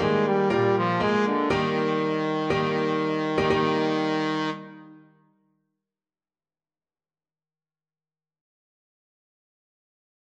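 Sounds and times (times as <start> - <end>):
trombone playing romance: 0.0 - 5.0.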